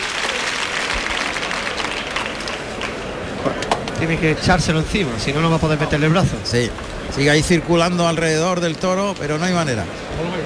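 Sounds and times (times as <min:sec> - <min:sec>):
bullring crowd applauding bullfighter Andrés Romero: 0:00.0 - 0:03.4
speech: 0:03.4 - 0:10.4.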